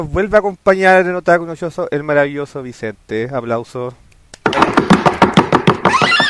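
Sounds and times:
speech: 0.0s - 4.0s
rhythmic foot stomping, zapateado dance steps: 4.4s - 6.2s
brief tonal squeal: 5.9s - 6.2s.

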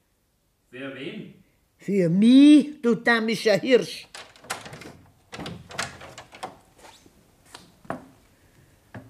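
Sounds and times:
speech: 0.7s - 4.2s
door being unlocked and opened: 4.0s - 6.7s.

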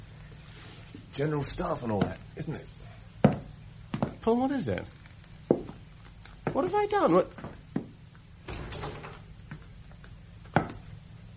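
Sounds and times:
speech: 1.2s - 2.8s, 4.2s - 5.0s, 6.5s - 7.4s
door opening: 8.4s - 9.4s.

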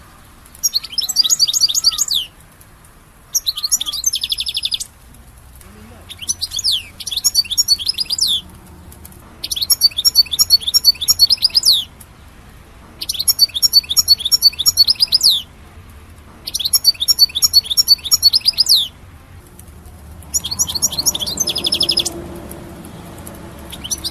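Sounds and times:
European goldfinch song: 0.0s - 24.0s.

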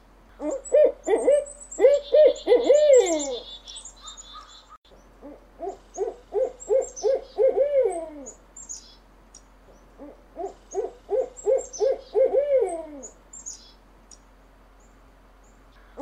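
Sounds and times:
owl hooting: 0.3s - 9.0s, 9.9s - 13.7s, 15.8s - 16.0s.

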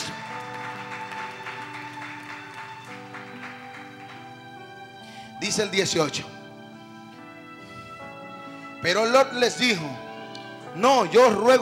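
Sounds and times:
audience clapping in rhythm: 0.0s - 5.0s
sustained keyboard music: 0.0s - 11.6s
speech: 5.4s - 6.4s, 8.8s - 10.0s, 10.8s - 11.6s.

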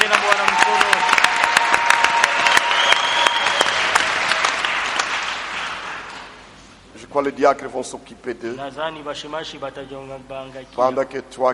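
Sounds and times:
congregation applauding during a French-language church service: 0.0s - 6.5s
speech: 7.2s - 11.5s.

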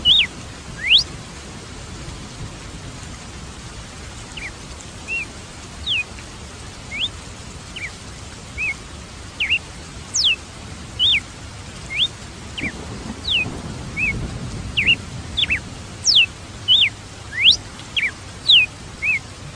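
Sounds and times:
red-cowled cardinal whistling: 0.0s - 1.0s, 5.1s - 6.0s, 6.9s - 7.1s, 9.4s - 10.4s, 11.0s - 11.2s, 11.9s - 13.4s, 14.8s - 19.2s.

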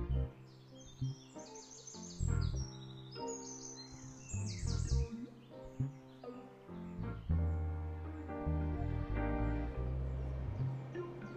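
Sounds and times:
birds singing and chirping in the morning: 0.1s - 11.3s
fuller, lower-pitched bird warbling: 4.3s - 9.7s.

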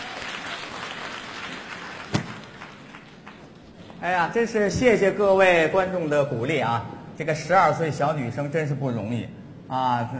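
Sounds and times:
audience applause: 0.0s - 3.5s
speech: 4.0s - 10.1s.

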